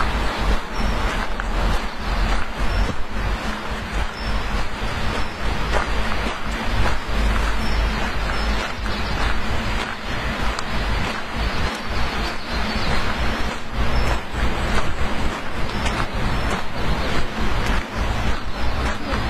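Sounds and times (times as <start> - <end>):
flowing water rushing: 0.0 - 19.2.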